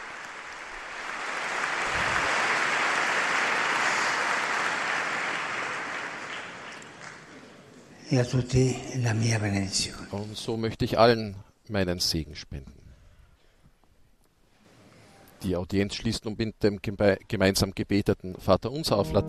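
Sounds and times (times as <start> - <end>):
audience applause: 0.0 - 7.8
speech: 8.1 - 12.8, 15.4 - 19.2.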